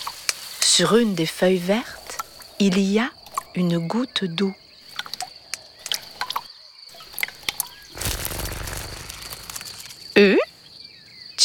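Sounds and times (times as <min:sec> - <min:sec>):
speech: 0:00.8 - 0:02.0, 0:02.6 - 0:04.6
ladybird wings buzzing: 0:07.9 - 0:10.2.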